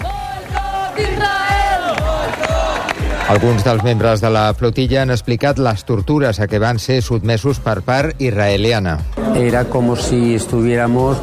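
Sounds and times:
crowd shouting protest chants against Israel: 0:00.0 - 0:03.9
speech: 0:03.3 - 0:11.2.

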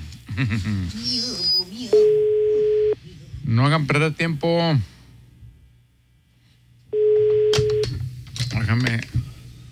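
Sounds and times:
speech: 0:00.4 - 0:02.4, 0:03.5 - 0:04.9, 0:08.7 - 0:09.2
telephone ringing tone on the line: 0:02.0 - 0:03.0, 0:06.9 - 0:07.9.

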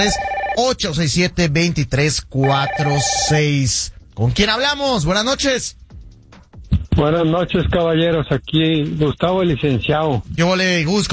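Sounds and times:
telephone ringing for a caller to a radio show: 0:00.0 - 0:00.7, 0:02.4 - 0:03.4
speech: 0:00.0 - 0:05.8, 0:07.0 - 0:11.1.

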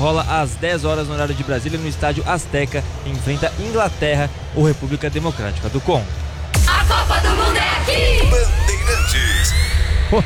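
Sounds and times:
speech: 0:00.0 - 0:06.2, 0:08.9 - 0:10.2
football fans chanting outside hotel: 0:06.5 - 0:09.0
rising whistle-like tones: 0:08.6 - 0:10.2.

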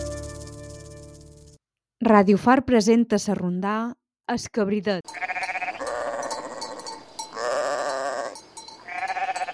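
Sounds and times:
speech: 0:02.0 - 0:05.3
goat bleating: 0:05.1 - 0:09.5.

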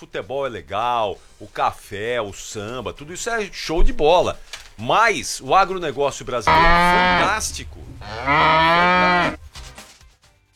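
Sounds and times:
speech: 0:00.0 - 0:09.4
ox mooing sound effect: 0:06.4 - 0:09.4.

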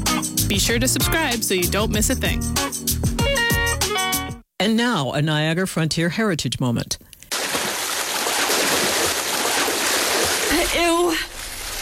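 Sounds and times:
speech: 0:00.2 - 0:03.2, 0:04.6 - 0:07.1
water rushing as someone swims through a lake: 0:07.3 - 0:11.8.

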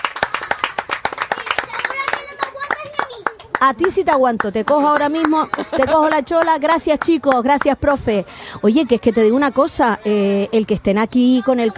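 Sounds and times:
audience applause: 0:00.0 - 0:03.6
speech: 0:03.6 - 0:11.7.

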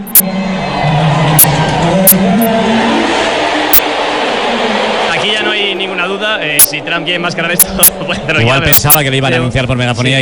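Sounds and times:
stadium crowd booing: 0:00.3 - 0:06.4
speech: 0:02.1 - 0:03.1, 0:05.3 - 0:10.1.

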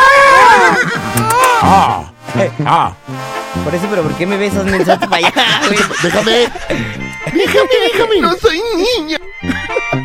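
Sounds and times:
horse neighing: 0:00.0 - 0:02.0
laughter: 0:00.4 - 0:01.4, 0:04.6 - 0:08.7, 0:09.4 - 0:10.0
speech: 0:02.5 - 0:10.0.

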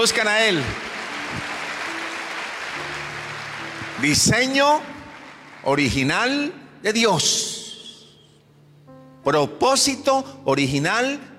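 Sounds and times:
speech: 0:00.0 - 0:01.5, 0:04.0 - 0:04.9, 0:05.6 - 0:07.4, 0:09.2 - 0:11.3
audience applause: 0:00.0 - 0:06.1.

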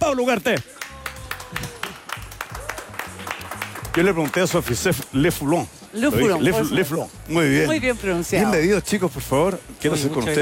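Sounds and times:
speech: 0:00.1 - 0:00.8, 0:04.0 - 0:10.4
audience rhythmic clapping: 0:00.5 - 0:05.2.

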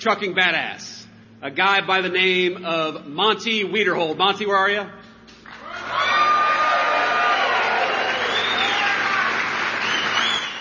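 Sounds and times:
speech: 0:00.0 - 0:05.0
crowd clapping and cheering: 0:05.4 - 0:10.5.

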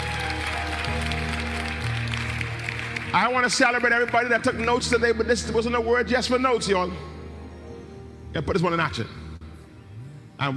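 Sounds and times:
audience clapping hands: 0:00.0 - 0:04.9
sustained low keyboard notes: 0:00.0 - 0:10.5
speech: 0:03.1 - 0:07.1, 0:08.4 - 0:09.2, 0:10.4 - 0:10.5.

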